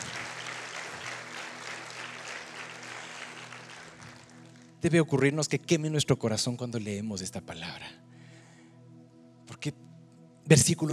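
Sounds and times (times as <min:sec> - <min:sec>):
audience applauding: 0:00.0 - 0:04.8
speech: 0:04.8 - 0:08.1, 0:09.6 - 0:09.8, 0:10.5 - 0:10.9.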